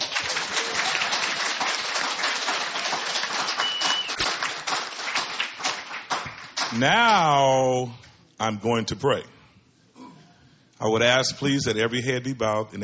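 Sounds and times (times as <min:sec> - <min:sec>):
audience clapping hands: 0:00.0 - 0:07.3
speech: 0:06.7 - 0:09.4, 0:10.8 - 0:12.8.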